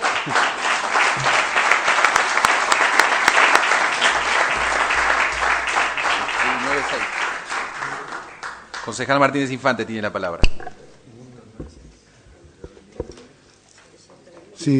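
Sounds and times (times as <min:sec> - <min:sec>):
audience applause in a council chamber: 0:00.0 - 0:09.2
speech: 0:00.2 - 0:00.5, 0:08.9 - 0:10.8.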